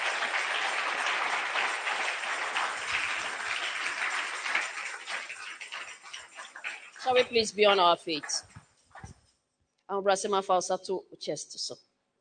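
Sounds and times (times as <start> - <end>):
audience clapping: 0.0 - 9.1
speech: 7.0 - 8.5, 9.9 - 11.8.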